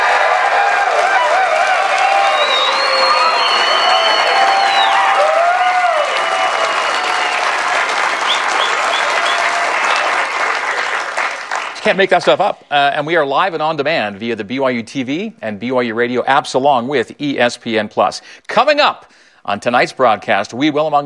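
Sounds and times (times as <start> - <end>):
studio audience whoops and shouts: 0.0 - 10.1
studio audience applause on the BYU campus in Provo, Utah: 0.0 - 12.4
speech: 11.9 - 21.0.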